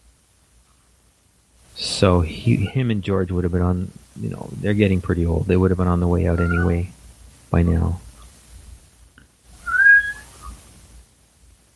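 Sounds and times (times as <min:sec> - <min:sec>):
speech: 0:02.0 - 0:08.1
cat meowing: 0:06.3 - 0:06.9, 0:09.6 - 0:10.3.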